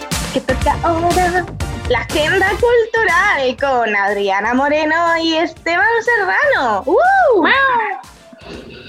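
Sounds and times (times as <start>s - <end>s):
speech: 0.4s - 7.9s
person imitating a cat meow: 7.0s - 8.1s.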